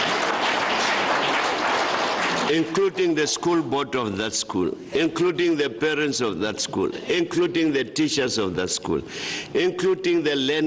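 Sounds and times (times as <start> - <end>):
loud applause honoring a school for its examination results: 0.0 - 3.0
speech: 2.5 - 10.6.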